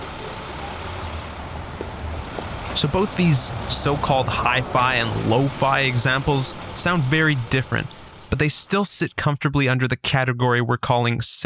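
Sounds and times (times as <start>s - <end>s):
trucks and buses droning past at range: 0.0s - 8.4s
steady low rumble of heavy city road traffic: 0.0s - 9.0s
speech: 2.8s - 11.4s.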